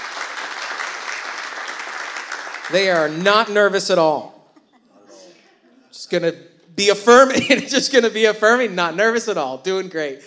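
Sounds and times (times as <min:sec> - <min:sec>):
church congregation applause welcoming a guest couple: 0:00.0 - 0:04.0
speech: 0:02.7 - 0:04.3, 0:06.1 - 0:10.2.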